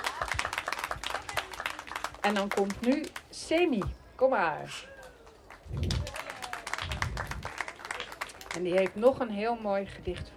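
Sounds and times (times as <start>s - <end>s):
audience applause: 0.0s - 3.3s, 5.0s - 9.0s
speech: 2.2s - 4.9s, 8.6s - 10.3s.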